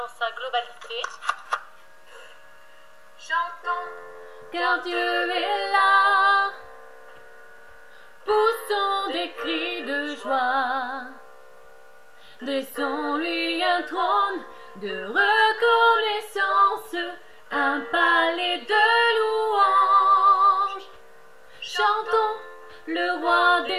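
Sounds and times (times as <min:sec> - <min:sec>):
vocal duet singing: 0:03.2 - 0:06.8, 0:08.2 - 0:11.3, 0:12.4 - 0:21.0, 0:21.6 - 0:23.7.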